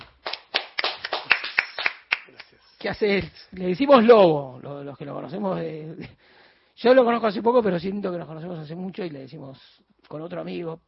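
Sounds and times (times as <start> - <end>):
applause, hands clapping: 0.0 - 3.4
speech: 2.8 - 10.8.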